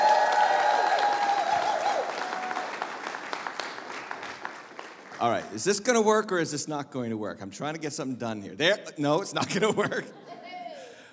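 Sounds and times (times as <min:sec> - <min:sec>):
audience applauding at a church service: 0:00.0 - 0:05.7
speech: 0:05.2 - 0:10.4
laughter: 0:09.4 - 0:10.8.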